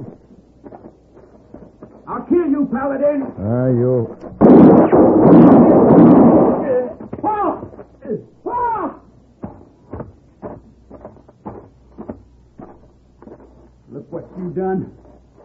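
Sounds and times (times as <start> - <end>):
speech: 2.1 - 6.1, 14.5 - 15.0
gunshot: 4.3 - 7.0.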